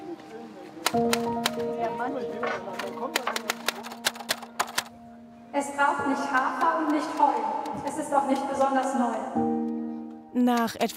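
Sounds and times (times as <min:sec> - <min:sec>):
keystroke clacks of someone typing a poem to order: 0:00.8 - 0:01.8, 0:02.4 - 0:04.9, 0:06.2 - 0:08.9
speech: 0:00.9 - 0:03.7, 0:05.6 - 0:09.5, 0:10.4 - 0:10.9.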